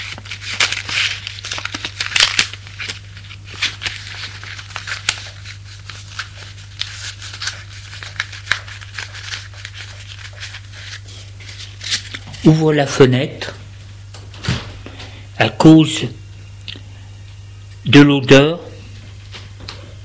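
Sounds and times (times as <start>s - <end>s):
paper crinkling while rolling a joint by hand: 0.0s - 12.6s
speech: 12.5s - 13.6s, 15.6s - 16.2s, 17.9s - 18.7s.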